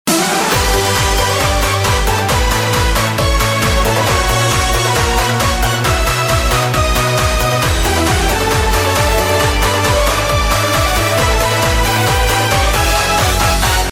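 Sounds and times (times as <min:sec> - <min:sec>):
intro music: 0:00.1 - 0:13.9.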